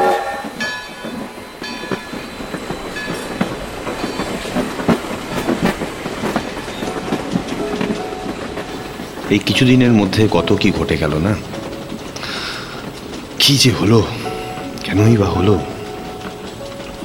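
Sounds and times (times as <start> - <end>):
train pulling away from a station: 0.0 - 17.0
train wheels clickety-clack over rail joints: 0.0 - 17.0
speech: 9.3 - 11.6, 13.5 - 14.2, 14.9 - 15.7.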